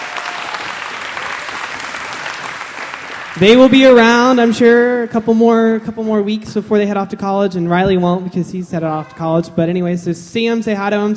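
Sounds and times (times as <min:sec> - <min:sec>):
audience applause: 0:00.0 - 0:04.1
speech: 0:03.4 - 0:11.1.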